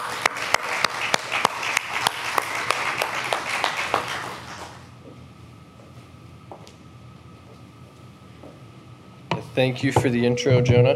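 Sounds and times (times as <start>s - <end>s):
church audience applauding to welcome a preacher: 0.0s - 4.9s
speech: 9.6s - 10.9s.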